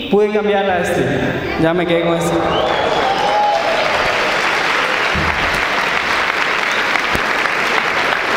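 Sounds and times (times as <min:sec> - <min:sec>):
speech: 0:00.1 - 0:02.9
audience applause: 0:02.3 - 0:08.3.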